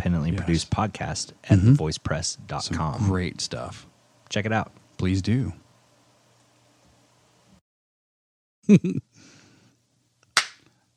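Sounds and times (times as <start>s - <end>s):
speech: 0.0s - 5.6s, 8.7s - 9.3s
laughter: 8.7s - 9.0s
high five hand slap: 10.4s - 10.6s.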